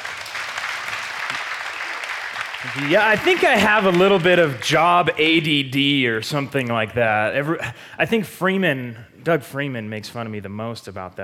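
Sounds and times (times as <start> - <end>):
audience applause: 0.0 - 5.2
speech: 2.6 - 11.2.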